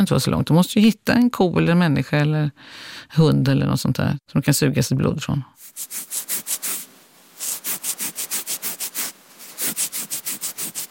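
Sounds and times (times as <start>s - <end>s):
speech: 0.0s - 6.3s
scratching an itchy mosquito bite: 5.6s - 10.8s.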